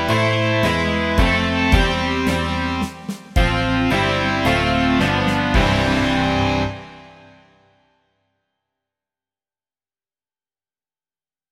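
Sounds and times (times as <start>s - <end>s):
rock music: 0.0s - 7.8s.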